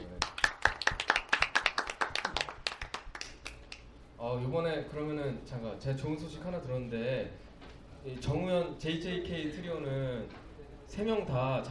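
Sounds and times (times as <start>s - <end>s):
hand clapping: 0.1s - 3.9s
speech: 4.3s - 7.4s, 8.0s - 11.6s.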